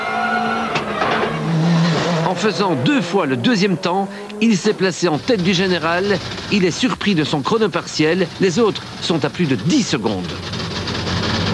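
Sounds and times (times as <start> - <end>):
brief scrabbling squeal: 0.0 - 2.6
rally car engine roaring through a hairpin: 0.0 - 11.5
speech: 2.4 - 10.6.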